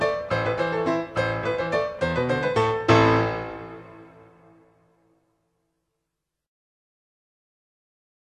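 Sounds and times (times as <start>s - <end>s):
solo piano: 0.0s - 5.1s.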